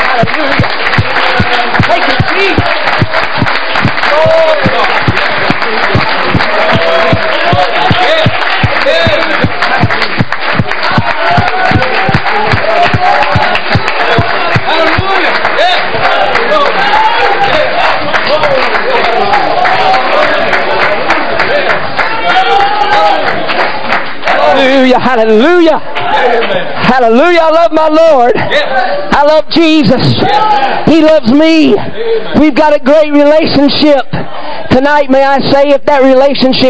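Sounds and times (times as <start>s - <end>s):
audience clapping hands in praise: 0.0s - 27.8s
cheers and shouting voices: 0.0s - 35.0s
speech: 25.2s - 34.2s, 34.8s - 36.6s.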